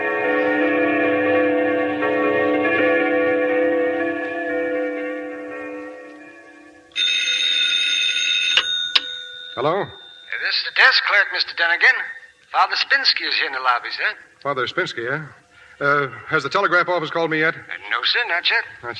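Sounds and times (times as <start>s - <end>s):
bells ringing: 0.0s - 12.4s
speech: 9.6s - 18.9s.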